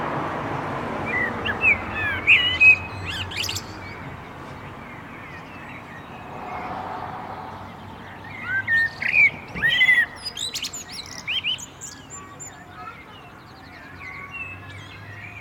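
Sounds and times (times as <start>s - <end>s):
common blackbird song: 1.0s - 15.3s.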